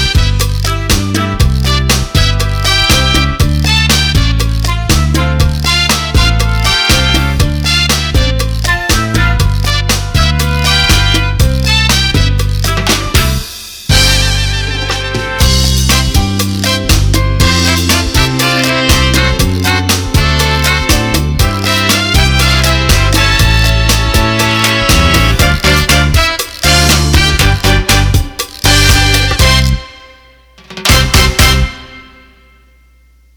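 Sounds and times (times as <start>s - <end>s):
cha-cha music: 0.0s - 33.3s.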